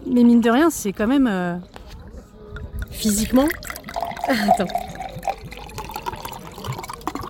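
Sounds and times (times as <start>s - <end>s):
speech: 0.2s - 1.8s, 2.9s - 3.7s, 4.3s - 4.8s
liquor being poured into a glass: 2.7s - 7.2s
laughter: 4.2s - 4.9s.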